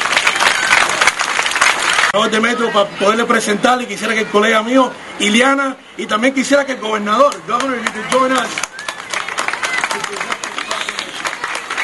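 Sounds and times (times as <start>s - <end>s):
crowd applause: 0.0s - 2.1s, 7.6s - 11.8s
speech: 2.1s - 8.7s.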